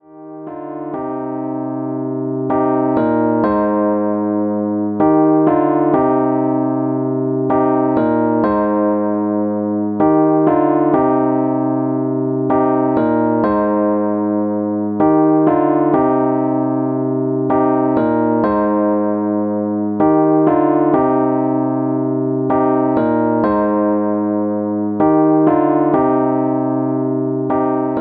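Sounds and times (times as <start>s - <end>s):
Rhodes electric piano hip hop chords: 0.0s - 27.9s.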